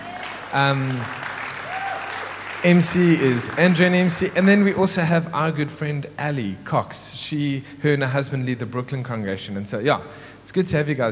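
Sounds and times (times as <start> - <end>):
audience applause: 0.0 - 4.8
speech: 0.5 - 1.2, 2.6 - 11.1.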